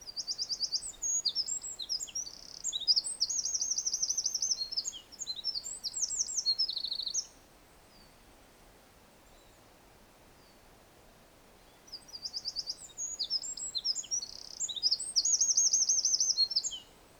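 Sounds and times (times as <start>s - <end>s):
Eurasian wren singing: 0.1s - 7.3s, 12.0s - 16.9s.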